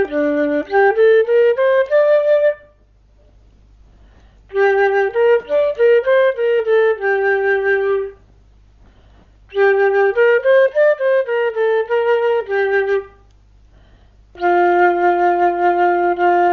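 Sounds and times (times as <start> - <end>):
flute melody: 0.0 - 2.9, 4.5 - 8.2, 9.5 - 13.3, 14.4 - 16.5.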